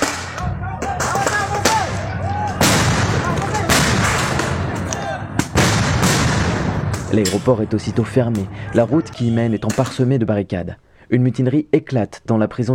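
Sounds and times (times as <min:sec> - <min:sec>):
stun grenade explosions at night: 0:01.0 - 0:07.6
speech: 0:07.1 - 0:12.7.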